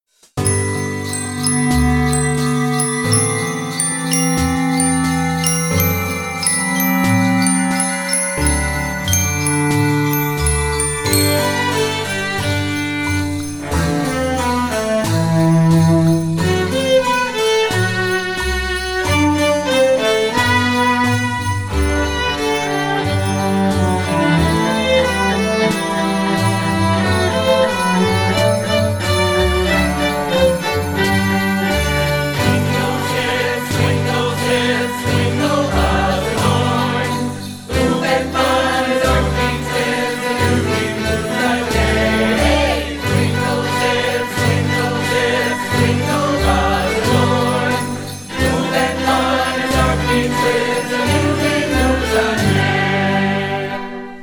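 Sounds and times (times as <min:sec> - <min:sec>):
jingle: 0:00.4 - 0:54.2.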